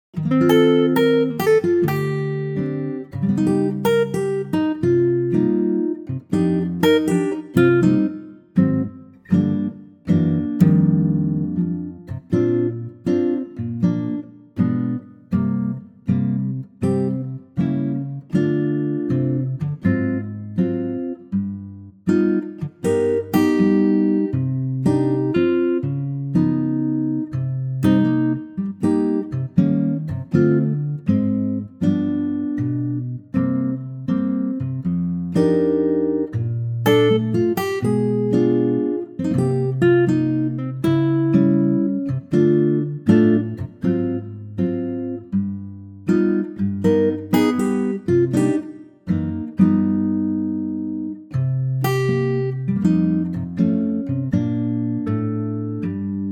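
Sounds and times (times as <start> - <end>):
acoustic guitar in B flat: 0.1 - 56.3.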